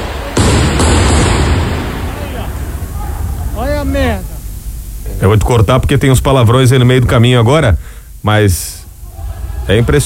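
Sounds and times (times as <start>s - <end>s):
fireworks bursting in the Cooper parking lot: 0.0s - 4.8s
fireworks crackling roar in the Cooper parking lot: 0.0s - 5.9s
speech: 5.2s - 8.8s, 9.7s - 10.0s.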